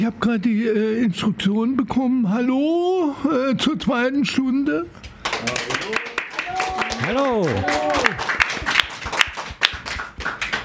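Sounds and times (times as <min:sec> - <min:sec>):
speech: 0:00.0 - 0:08.4
crowd applause: 0:05.2 - 0:10.6.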